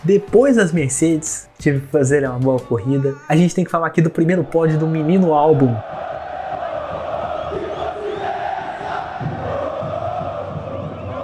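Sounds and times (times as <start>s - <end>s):
speech: 0.0s - 6.1s
crowd of fans cheering and roaring: 4.0s - 11.2s.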